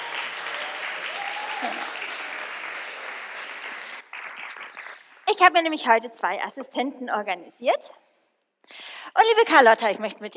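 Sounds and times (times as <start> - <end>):
audience applause: 0.0 - 5.2
speech: 1.6 - 2.0, 5.3 - 8.1, 8.7 - 10.3.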